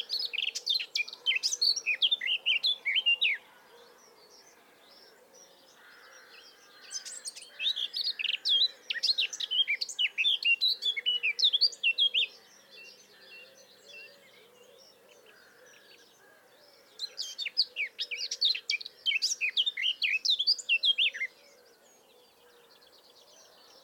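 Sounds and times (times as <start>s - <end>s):
Eurasian blackcap song: 0.0s - 3.4s, 6.4s - 13.0s, 17.0s - 21.4s.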